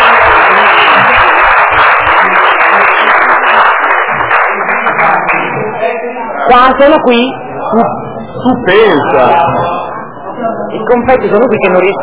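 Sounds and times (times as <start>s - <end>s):
crowd applauding: 0.0s - 5.8s
speech: 6.5s - 9.6s, 10.7s - 12.0s.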